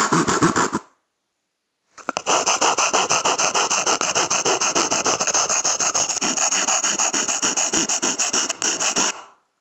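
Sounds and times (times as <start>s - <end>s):
saw cutting toilet paper roll: 2.0s - 9.3s.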